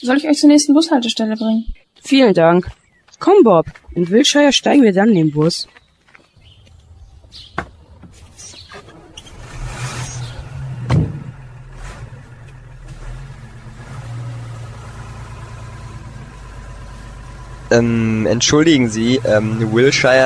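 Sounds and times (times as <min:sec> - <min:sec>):
speech: 0:00.0 - 0:05.8, 0:17.7 - 0:20.2
car engine humming: 0:06.0 - 0:20.2
loud thump: 0:07.5 - 0:08.2, 0:10.8 - 0:11.4.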